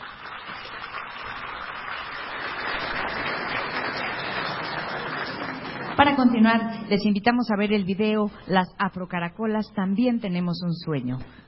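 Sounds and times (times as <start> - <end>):
audience applause: 0.0 - 6.3
speech: 6.0 - 11.4.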